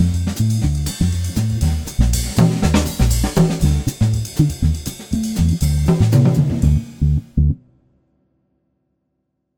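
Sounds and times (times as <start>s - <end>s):
alt style jazz guitar: 0.0s - 7.6s.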